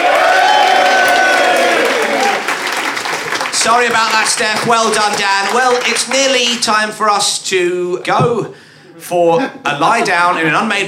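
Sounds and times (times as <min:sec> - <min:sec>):
studio audience applause: 0:00.0 - 0:06.7
speech: 0:03.7 - 0:10.8.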